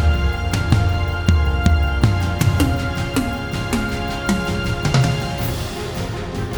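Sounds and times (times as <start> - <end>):
tom-tom drum: 0.0 - 6.4.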